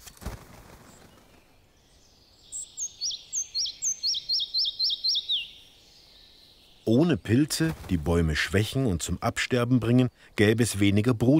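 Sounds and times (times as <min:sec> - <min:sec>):
red-breasted flycatcher singing: 0:01.9 - 0:07.3
speech: 0:06.9 - 0:11.3.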